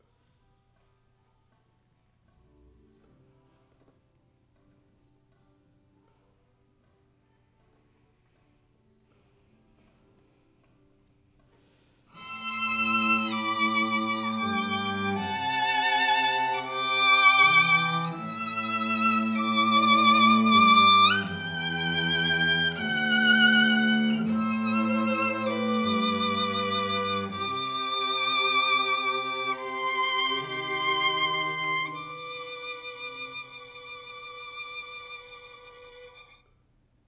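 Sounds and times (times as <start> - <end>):
violin: 12.2 - 36.6.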